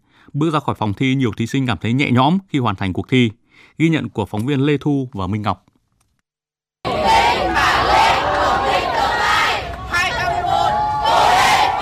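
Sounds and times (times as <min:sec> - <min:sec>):
speech: 0:00.3 - 0:05.7
parents and volunteers cheering and clapping: 0:06.9 - 0:11.8.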